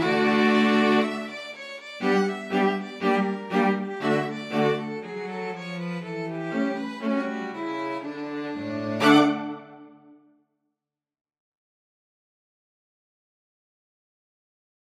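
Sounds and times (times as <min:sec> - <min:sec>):
string quartet playing: 0:00.0 - 0:10.0.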